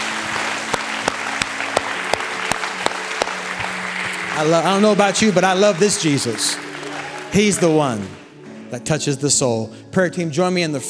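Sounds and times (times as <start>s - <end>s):
audience applause: 0.0s - 8.4s
sharp evenly spaced louder claps: 0.0s - 8.4s
speech: 4.4s - 6.7s, 7.3s - 10.8s.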